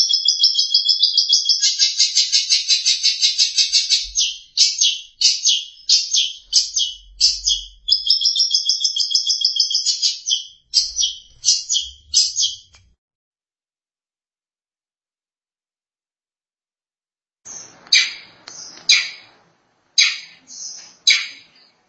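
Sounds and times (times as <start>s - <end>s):
long-tailed shrike song: 0.0s - 12.9s, 17.5s - 21.8s.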